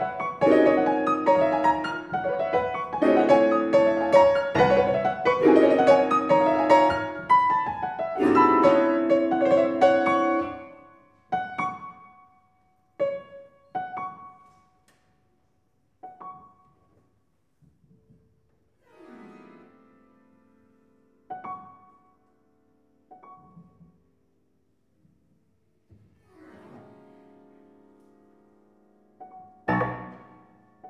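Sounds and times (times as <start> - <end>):
piano playing: 0.0 - 11.0, 26.5 - 30.8.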